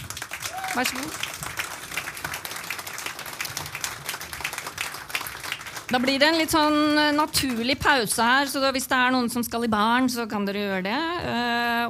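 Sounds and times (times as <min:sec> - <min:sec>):
audience applause: 0:00.0 - 0:07.8
speech: 0:00.8 - 0:01.4, 0:05.9 - 0:11.8.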